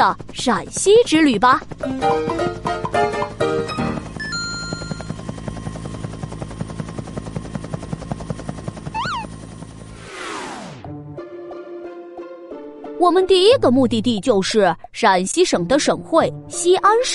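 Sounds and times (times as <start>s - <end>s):
speech: 0.0s - 3.1s, 13.0s - 17.1s
airplane engine droning: 0.0s - 10.8s.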